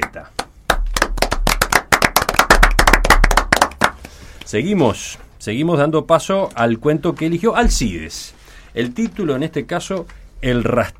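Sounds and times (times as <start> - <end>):
applause, hands clapping: 0.0 - 4.5
speech: 0.2 - 0.4, 4.5 - 10.9.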